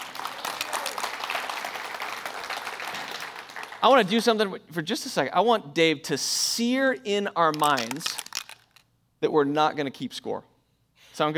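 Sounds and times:
audience applause: 0.0 - 3.9
speech: 3.8 - 8.2, 9.2 - 10.5, 11.2 - 11.3.

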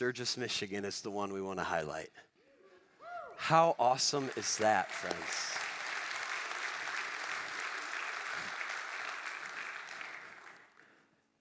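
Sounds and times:
speech: 0.0 - 2.3, 3.4 - 5.7
audience clapping: 3.5 - 11.0.

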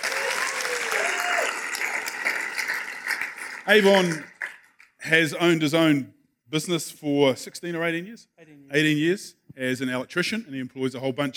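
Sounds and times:
audience applauding to welcome a speaker: 0.0 - 4.9
speech: 3.7 - 4.3, 5.0 - 11.3.

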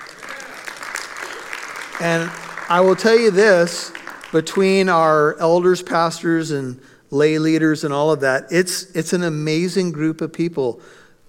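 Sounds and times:
audience clapping: 0.0 - 5.3
speech: 2.0 - 11.0.

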